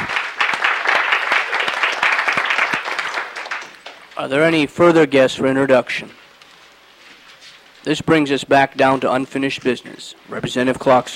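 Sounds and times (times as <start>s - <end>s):
applause welcoming a guest in a legislative chamber: 0.0s - 4.2s
speech: 4.2s - 6.2s, 7.8s - 11.1s.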